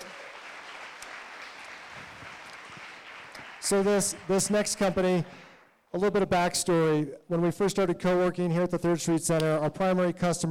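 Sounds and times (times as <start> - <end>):
audience applause for a presenter at a coworking-space event: 0.0 - 5.6
speech: 3.6 - 10.4.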